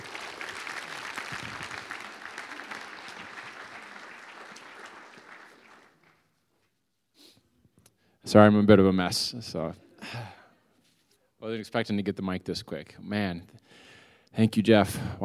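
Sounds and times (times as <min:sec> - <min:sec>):
audience clapping for the pastor: 0:00.0 - 0:06.6
speech: 0:08.3 - 0:10.4, 0:11.4 - 0:15.2.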